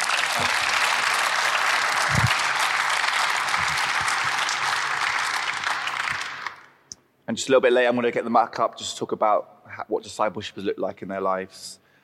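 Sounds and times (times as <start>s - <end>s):
audience applause: 0.0s - 6.7s
speech: 7.3s - 11.8s.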